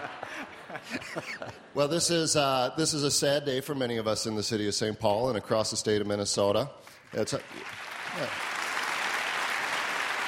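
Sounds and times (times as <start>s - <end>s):
laughter: 0.0s - 2.1s
speech: 0.2s - 8.5s
audience clapping: 7.0s - 10.2s.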